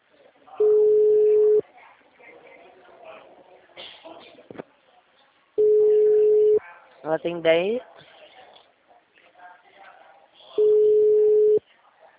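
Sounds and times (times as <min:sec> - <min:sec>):
telephone beeps as a call is placed: 0:00.6 - 0:01.6, 0:05.6 - 0:06.6, 0:10.6 - 0:11.6
speech: 0:07.1 - 0:07.9.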